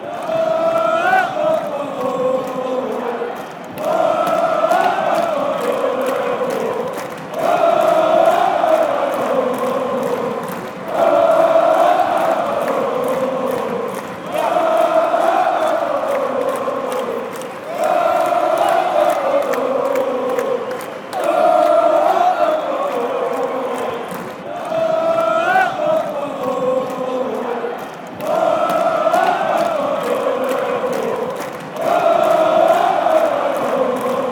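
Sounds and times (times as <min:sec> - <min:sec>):
fans chanting in Sweden: 0:00.0 - 0:34.2.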